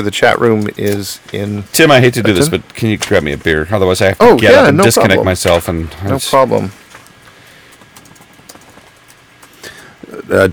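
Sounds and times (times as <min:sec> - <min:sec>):
speech: 0:00.0 - 0:06.8, 0:10.1 - 0:10.5
typing on a computer keyboard: 0:07.7 - 0:09.6.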